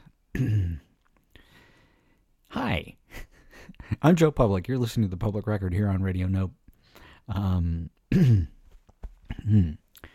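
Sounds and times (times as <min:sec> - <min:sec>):
person clearing throat: 0:00.3 - 0:01.0, 0:08.1 - 0:08.7, 0:09.3 - 0:09.9
speech: 0:00.4 - 0:00.8, 0:04.0 - 0:06.6, 0:07.3 - 0:08.6, 0:09.4 - 0:09.8.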